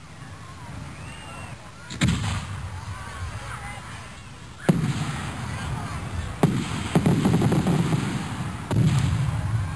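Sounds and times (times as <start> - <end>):
crowd: 0.0 - 9.7
fireworks exploding: 1.8 - 4.0, 4.6 - 9.7.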